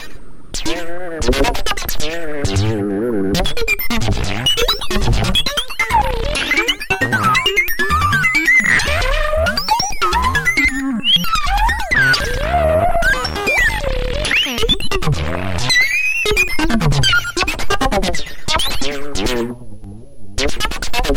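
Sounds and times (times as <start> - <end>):
synthesizer improvisation: 0.5 - 21.1.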